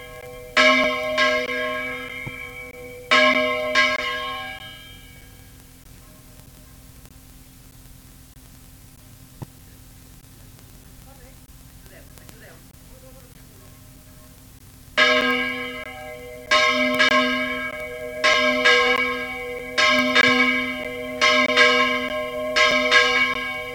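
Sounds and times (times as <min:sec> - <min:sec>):
bell: 0:00.0 - 0:05.5, 0:15.0 - 0:23.7.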